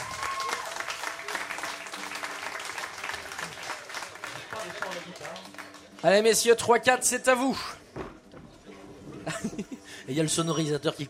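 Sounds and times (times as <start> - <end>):
audience applause: 0.0 - 5.9
speech: 5.3 - 7.8, 10.1 - 11.0.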